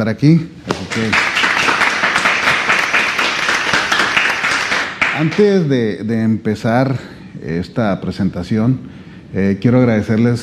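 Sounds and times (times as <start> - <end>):
speech: 0.0 - 1.3, 5.2 - 10.4
crowd applauding: 0.8 - 5.6.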